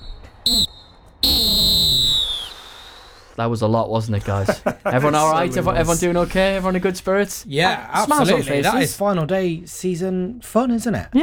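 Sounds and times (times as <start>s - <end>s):
halftime whistle: 0.0s - 3.4s
speech: 0.4s - 0.8s, 3.4s - 11.2s
laughter: 4.1s - 9.0s.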